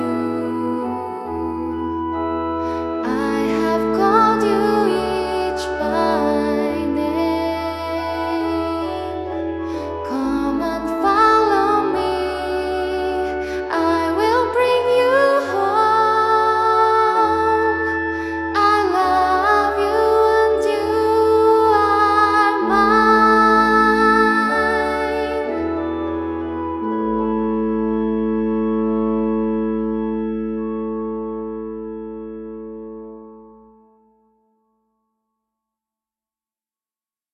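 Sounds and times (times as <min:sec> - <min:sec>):
person singing: 0:00.0 - 0:28.1
organ: 0:00.0 - 0:34.0.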